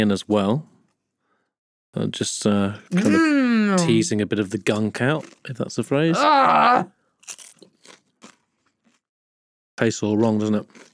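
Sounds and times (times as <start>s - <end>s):
speech: 0.0s - 0.7s, 2.0s - 7.6s, 9.8s - 10.9s
chewing crunches of a poppadom: 5.2s - 5.6s, 7.2s - 9.1s, 10.6s - 10.9s.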